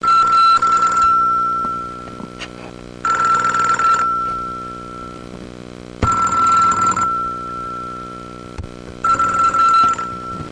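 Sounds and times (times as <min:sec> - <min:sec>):
telephone: 0:00.0 - 0:02.3, 0:03.0 - 0:04.8, 0:06.0 - 0:07.4, 0:09.0 - 0:10.4.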